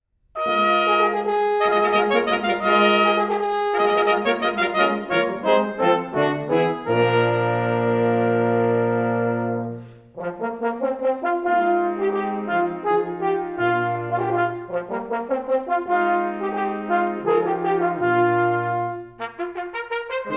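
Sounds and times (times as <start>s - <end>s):
fanfare: 0.4s - 20.3s.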